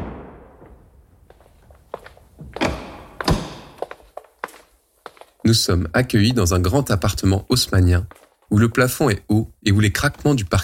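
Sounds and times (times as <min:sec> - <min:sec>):
building door opening: 0:02.4 - 0:04.0
speech: 0:05.5 - 0:10.6.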